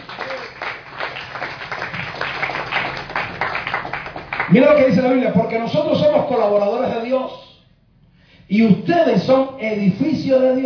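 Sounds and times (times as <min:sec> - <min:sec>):
audience applause: 0:00.0 - 0:04.5
speech: 0:04.5 - 0:07.4, 0:08.5 - 0:10.6.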